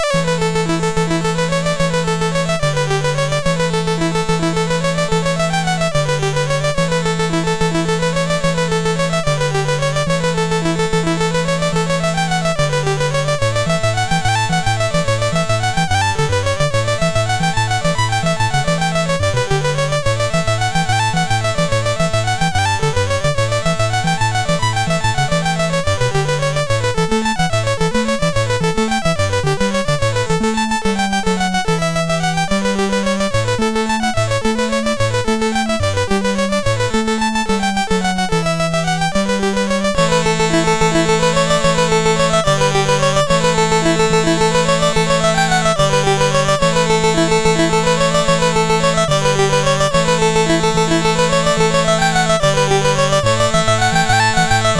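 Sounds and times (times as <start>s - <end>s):
jig on MOS6581R2 sound chip: 0.0s - 54.7s.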